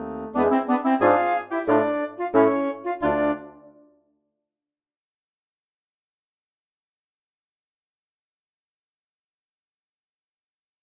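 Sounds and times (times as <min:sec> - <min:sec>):
wind quintet: 0:00.2 - 0:03.8.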